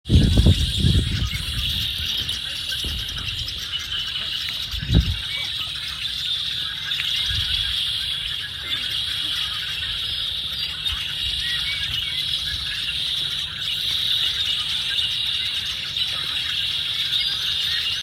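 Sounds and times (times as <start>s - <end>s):
Redwinged blackbirds: 0.1s - 18.0s.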